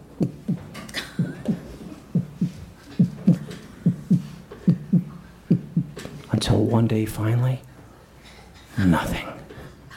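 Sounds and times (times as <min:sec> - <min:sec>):
drum beats like a heartbeat: 0:00.0 - 0:06.0
speech: 0:06.6 - 0:07.7, 0:08.8 - 0:09.4.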